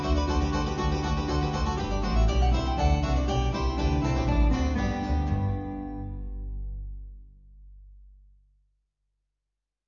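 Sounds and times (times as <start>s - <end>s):
mandolin ensemble: 0.0s - 6.9s.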